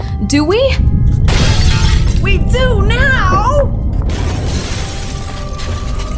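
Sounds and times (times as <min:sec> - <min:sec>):
speech: 0:00.3 - 0:01.0, 0:02.2 - 0:03.8
deep earthquake rumble: 0:00.7 - 0:06.1
objects clattering and crashing down: 0:01.1 - 0:06.1
sharp burst of breaking: 0:01.2 - 0:02.4, 0:03.9 - 0:06.1.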